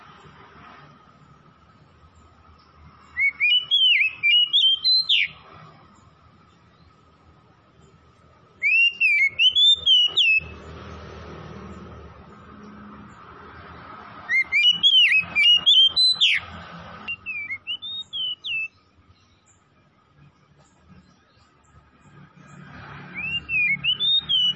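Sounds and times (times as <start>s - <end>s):
Oriental magpie-robin whistled song: 2.2s - 7.0s, 8.5s - 10.7s, 14.2s - 24.5s.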